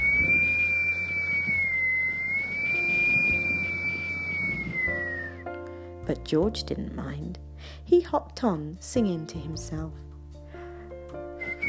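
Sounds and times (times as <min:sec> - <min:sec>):
wind whistling: 0:00.0 - 0:05.4
speech: 0:06.1 - 0:10.1.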